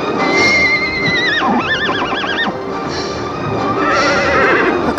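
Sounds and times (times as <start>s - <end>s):
foal whinnying for its mother: 0.2s - 2.6s, 3.7s - 4.9s.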